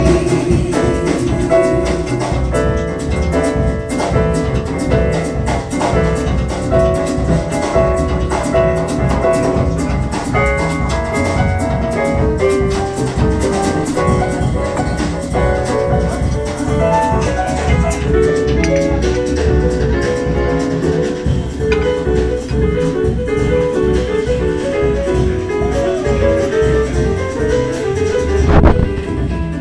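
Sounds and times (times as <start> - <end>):
jazz music: 0.0 - 29.6.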